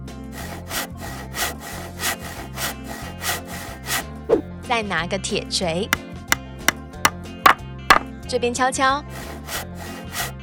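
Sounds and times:
handsaw sawing wood: 0.3s - 4.5s, 7.5s - 8.1s, 9.1s - 10.4s
speech: 4.3s - 6.0s, 8.3s - 9.1s.

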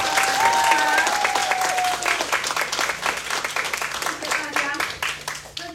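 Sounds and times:
audience applause: 0.0s - 5.6s.

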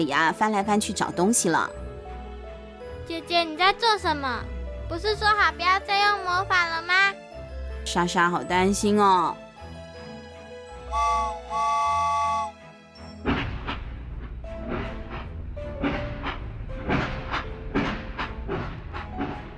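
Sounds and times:
speech: 0.0s - 1.9s, 3.1s - 7.2s, 7.8s - 9.4s
ghost train ride whistle blasts: 10.9s - 12.6s
ghost train wheels clattering on track: 13.3s - 19.5s.

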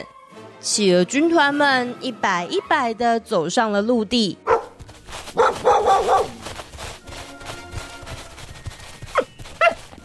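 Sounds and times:
speech: 0.0s - 4.6s
sled dogs yipping: 4.5s - 6.7s, 8.8s - 10.0s
sled dogs barking: 4.5s - 7.6s, 9.0s - 10.0s.

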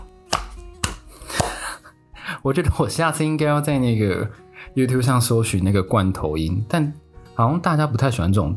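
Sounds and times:
single person clapping hands: 0.0s - 1.8s
speech: 2.4s - 8.5s.

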